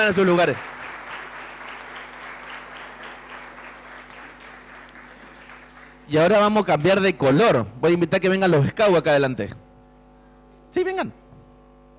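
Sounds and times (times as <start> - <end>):
speech: 0.0 - 0.8, 6.1 - 9.6, 10.7 - 11.2
audience applause: 0.0 - 6.1.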